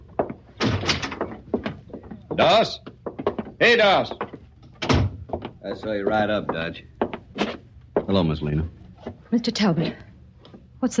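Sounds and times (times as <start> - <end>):
door opening and closing: 0.5 - 1.8, 4.7 - 5.5
speech: 2.4 - 2.9, 3.6 - 4.2, 5.7 - 6.9, 8.1 - 8.7, 9.3 - 10.0.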